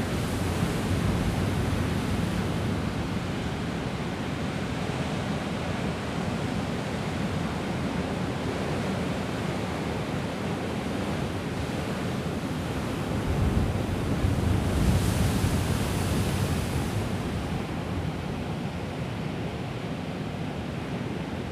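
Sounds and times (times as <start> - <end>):
strong waves on the ocean in Casablanca Morocco: 0.0 - 21.5.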